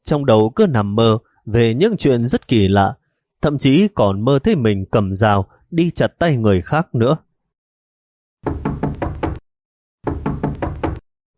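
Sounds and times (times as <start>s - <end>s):
speech: 0.1s - 7.3s
pounding knocks on a door: 8.4s - 9.4s, 10.0s - 11.0s.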